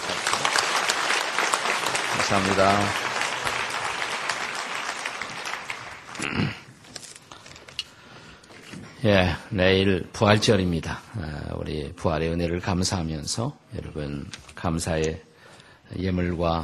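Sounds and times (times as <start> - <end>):
audience applause: 0.0 - 6.7
speech: 2.3 - 3.1, 9.0 - 15.3, 15.9 - 16.6.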